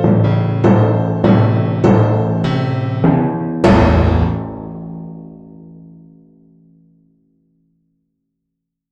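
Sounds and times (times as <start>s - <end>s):
timpani: 0.0s - 5.9s
piano: 0.0s - 7.2s.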